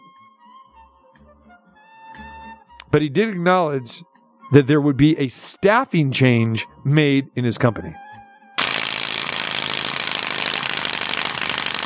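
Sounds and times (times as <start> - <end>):
speech: 2.9 - 8.0
rapid loud clicking rattle: 8.6 - 11.8.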